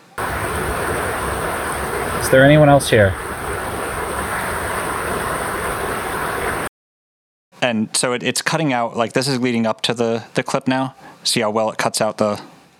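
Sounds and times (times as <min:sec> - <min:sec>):
loud river rushing: 0:00.0 - 0:06.7
speech: 0:02.3 - 0:03.3, 0:07.6 - 0:12.5.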